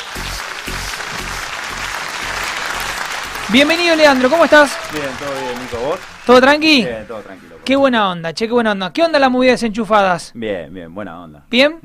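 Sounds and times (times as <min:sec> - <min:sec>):
applause: 0:00.0 - 0:07.8
speech: 0:03.5 - 0:11.8.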